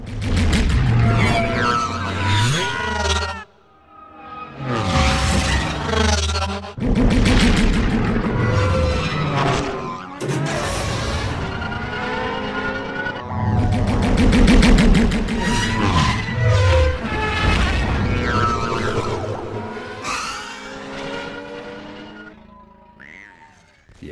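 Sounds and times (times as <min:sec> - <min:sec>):
podracer engines racing: 0:00.0 - 0:23.1
sharp boom: 0:06.8 - 0:09.4, 0:13.5 - 0:16.2.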